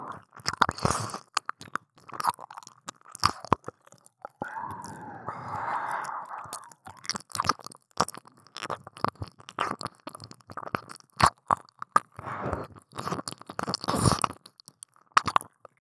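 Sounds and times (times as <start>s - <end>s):
ear licking: 0.0s - 15.7s
deep kissing: 4.2s - 7.4s.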